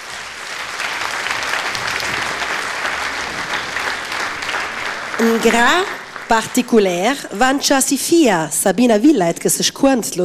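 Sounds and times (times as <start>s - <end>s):
audience applause: 0.0s - 7.5s
speech: 5.2s - 10.2s.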